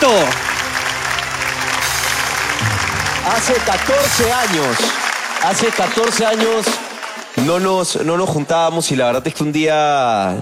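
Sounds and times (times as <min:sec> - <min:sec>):
audience applause: 0:00.0 - 0:08.0
speech: 0:03.4 - 0:06.8, 0:07.4 - 0:10.4.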